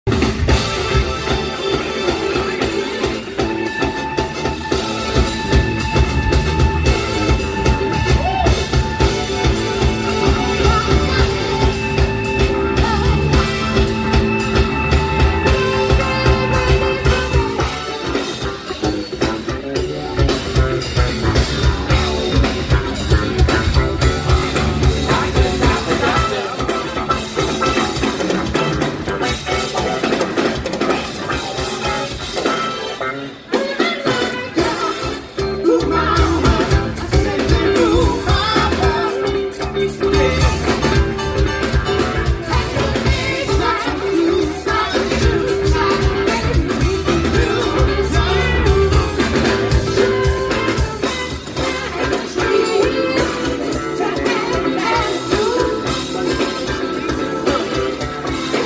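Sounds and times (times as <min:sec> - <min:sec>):
funk music: 0:00.0 - 0:58.6.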